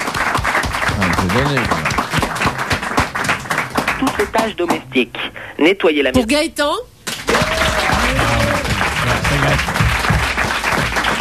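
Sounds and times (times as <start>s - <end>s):
audience applauding: 0.0s - 4.8s, 7.1s - 11.1s
speech: 1.2s - 1.8s, 4.0s - 6.9s.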